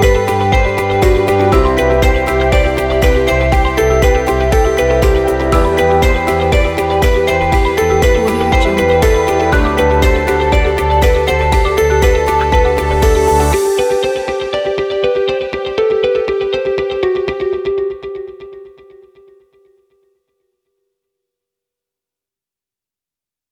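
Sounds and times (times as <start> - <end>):
uplifting corporate background music: 0.0 - 18.8.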